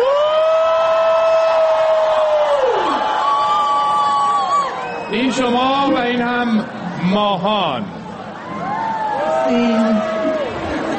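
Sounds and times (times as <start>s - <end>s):
audience giving a loud hurray: 0.0s - 5.6s, 8.4s - 10.6s
speech: 5.3s - 8.0s, 9.5s - 10.1s.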